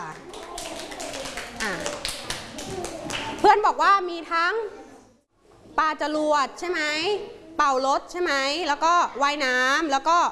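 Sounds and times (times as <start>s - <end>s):
classroom group clapping for a classmate: 0.0s - 3.6s
speech: 3.5s - 4.8s, 5.8s - 10.2s.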